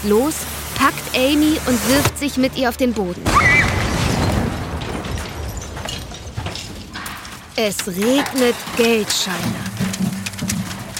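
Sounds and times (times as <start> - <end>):
speech: 0.0 - 3.6, 7.6 - 9.7
ATM explosion: 3.3 - 6.3.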